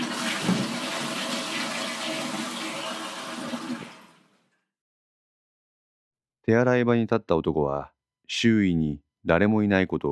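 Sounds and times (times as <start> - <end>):
toilet flushing: 0.0 - 4.4
speech: 6.4 - 10.1.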